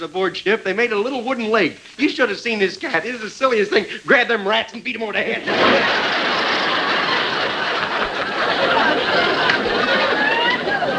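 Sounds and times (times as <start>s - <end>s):
speech: 0.0s - 6.2s
laughter: 2.9s - 10.9s
audience applauding: 5.3s - 10.9s.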